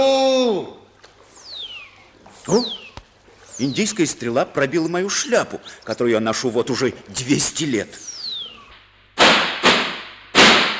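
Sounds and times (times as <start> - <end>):
speech: 2.5 - 2.7, 3.6 - 8.1
gunshots: 9.2 - 10.7.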